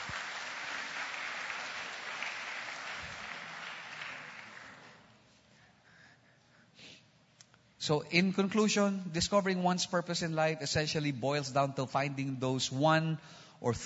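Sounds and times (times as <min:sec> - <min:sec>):
church congregation applauding: 0:00.0 - 0:05.1
speech: 0:07.9 - 0:13.8.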